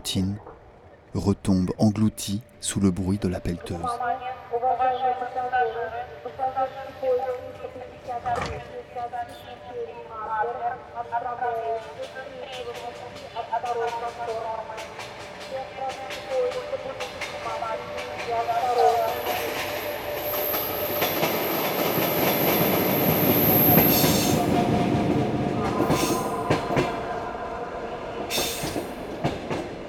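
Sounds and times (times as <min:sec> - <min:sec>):
speech: 0:00.1 - 0:00.5, 0:01.1 - 0:19.5
rhythmic train rail clicks: 0:11.8 - 0:27.3, 0:28.3 - 0:29.8
night train rolling on rails: 0:11.8 - 0:29.8.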